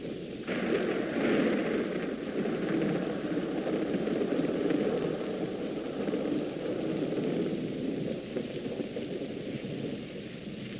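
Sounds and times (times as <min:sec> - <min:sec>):
thunder: 0:00.0 - 0:10.7.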